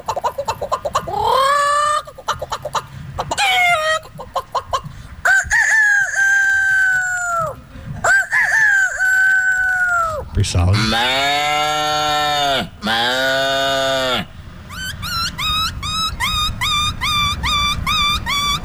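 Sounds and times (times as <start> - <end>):
man imitating rapid clucking chicken calls: 0.0 - 18.6
man imitating long wavering rooster-like crows: 5.3 - 10.2, 10.8 - 14.3
speech: 10.5 - 11.1.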